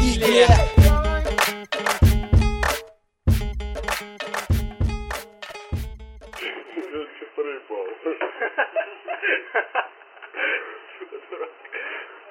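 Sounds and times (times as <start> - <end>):
hip hop music: 0.0 - 6.6
laughter: 7.8 - 12.2.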